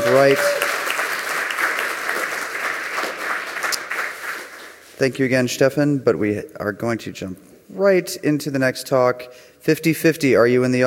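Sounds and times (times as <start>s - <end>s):
audience applause: 0.0s - 4.8s
speech: 0.1s - 0.6s, 5.0s - 10.8s.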